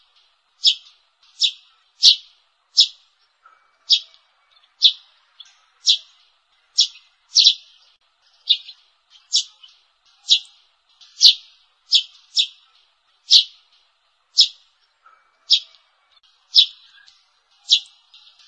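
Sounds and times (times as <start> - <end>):
sparrow lure call chirps: 0.0 - 18.4.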